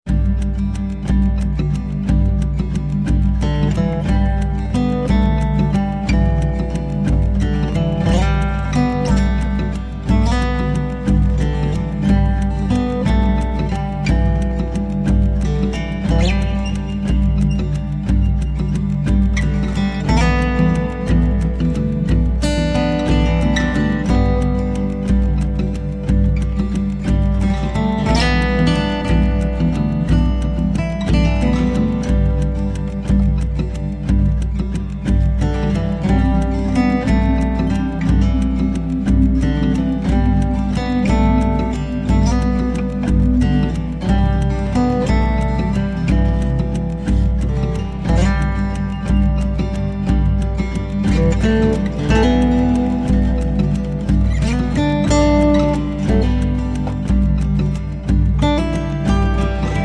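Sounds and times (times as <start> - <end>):
relaxing music: 0.1 - 59.8.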